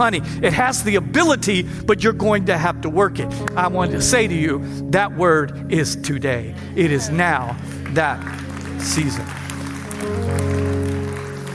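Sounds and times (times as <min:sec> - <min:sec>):
speech: 0:00.0 - 0:09.4
audience clapping: 0:07.2 - 0:11.5.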